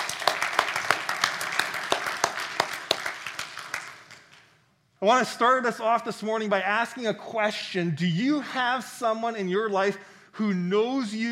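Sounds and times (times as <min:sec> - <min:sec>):
crowd clapping: 0:00.0 - 0:04.6
speech: 0:05.0 - 0:11.3.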